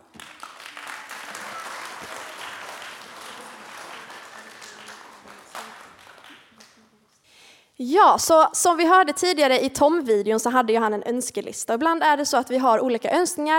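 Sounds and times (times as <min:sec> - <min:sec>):
crowd applauding: 0:00.0 - 0:06.9
speech: 0:07.8 - 0:13.5.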